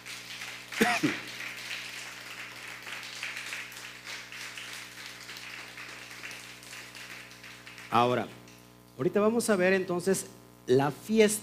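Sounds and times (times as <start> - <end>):
applause: 0.0 - 8.6
speech: 7.9 - 8.4, 9.0 - 11.4.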